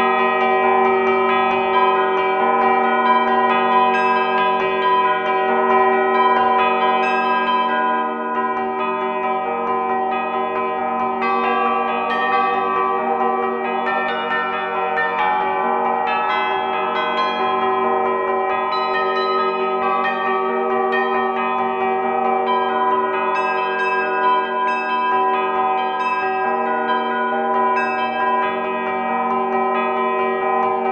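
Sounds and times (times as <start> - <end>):
bells in 12th root phi microtonal tuning: 0.0 - 30.9.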